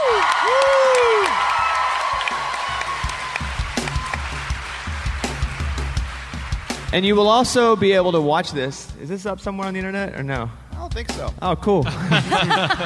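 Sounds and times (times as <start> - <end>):
whistles and whoops: 0.0 - 4.3
crowd clapping and cheering: 0.0 - 8.4
speech: 6.9 - 12.8
laughter: 11.8 - 12.8.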